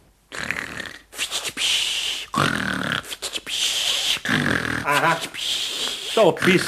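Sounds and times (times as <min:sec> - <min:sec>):
exaggerated fake snoring: 0:00.3 - 0:01.1, 0:02.2 - 0:03.2, 0:03.9 - 0:06.6
speech: 0:04.9 - 0:05.4, 0:06.2 - 0:06.6.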